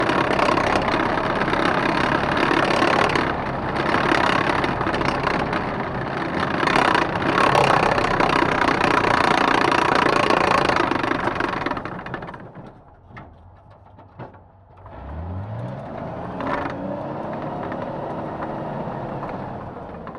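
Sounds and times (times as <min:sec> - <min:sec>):
1942 M10 tank destroyer tracks: 0:00.0 - 0:14.9
1942 M10 tank destroyer engine starting, driving and stopping, onboard: 0:00.0 - 0:20.1.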